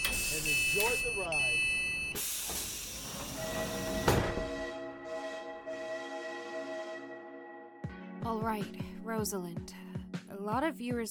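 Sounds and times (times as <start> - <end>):
train doors closing with pneumatic hiss: 0.0 - 5.5
speech: 0.7 - 1.7, 8.4 - 9.8, 10.4 - 11.0
electric train motor whine as train pulls away: 2.4 - 7.0.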